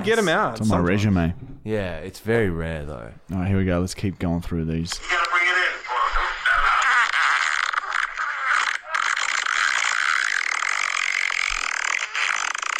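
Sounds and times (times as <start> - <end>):
speech: 0.0 - 5.8
long sputtering fart: 6.4 - 12.7.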